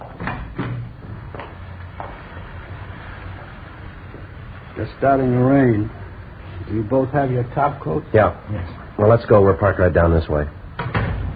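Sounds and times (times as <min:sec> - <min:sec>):
side door opening and closing: 0:00.0 - 0:01.6, 0:10.7 - 0:11.3
low steady rumble of room noise: 0:00.0 - 0:11.3
speech: 0:04.8 - 0:06.0, 0:06.7 - 0:10.6.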